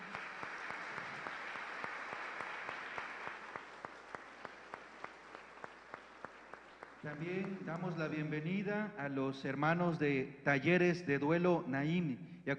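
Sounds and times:
audience applause: 0.0s - 8.1s
speech: 7.0s - 12.5s.

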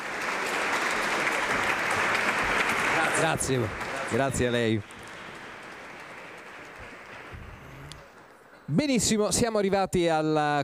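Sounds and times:
audience applause for a choir: 0.0s - 8.4s
speech: 3.2s - 4.9s, 8.7s - 10.6s.

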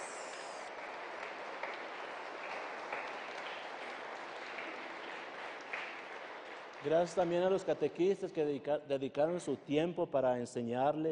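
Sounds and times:
audience applause: 0.0s - 8.1s
speech: 6.8s - 11.1s.

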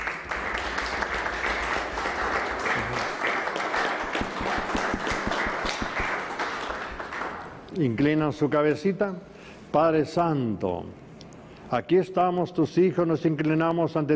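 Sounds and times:
audience applause: 0.0s - 7.6s
speech: 7.8s - 11.0s, 11.7s - 14.1s.

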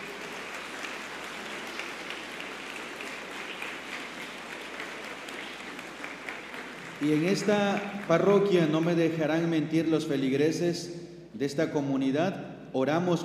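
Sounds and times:
applause: 0.0s - 9.0s
speech: 7.0s - 13.2s.

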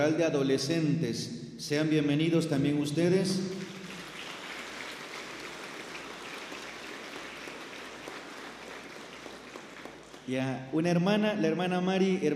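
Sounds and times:
speech: 0.0s - 3.6s, 10.3s - 12.3s
crowd applause: 3.5s - 10.4s.

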